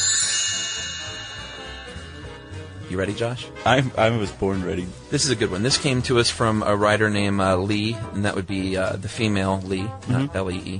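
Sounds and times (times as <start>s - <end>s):
bright chime: 0.0s - 4.4s
speech: 2.9s - 10.7s.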